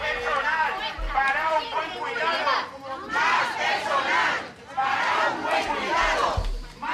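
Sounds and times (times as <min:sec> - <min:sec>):
protest crowd chanting outside care home: 0:00.0 - 0:06.9.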